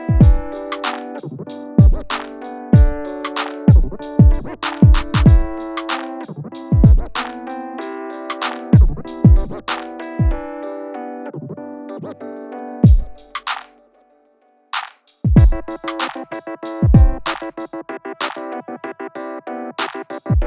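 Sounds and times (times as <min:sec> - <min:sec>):
original rap music: 0:00.0 - 0:10.5, 0:12.8 - 0:13.7, 0:14.8 - 0:18.7, 0:19.6 - 0:20.4.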